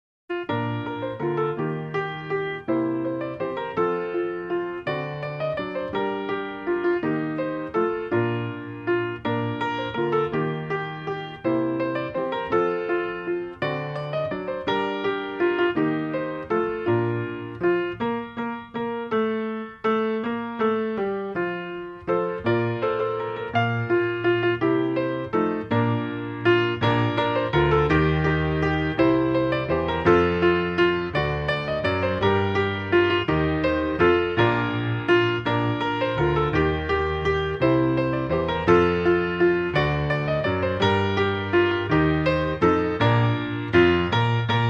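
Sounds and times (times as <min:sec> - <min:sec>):
solo piano playing: 0:00.3 - 0:44.6.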